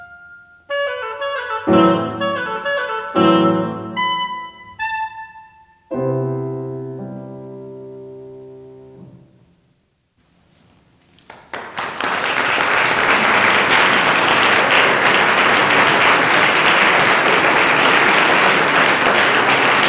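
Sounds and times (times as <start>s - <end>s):
oboe: 0.0s - 6.3s
piano: 0.0s - 9.8s, 12.8s - 19.8s.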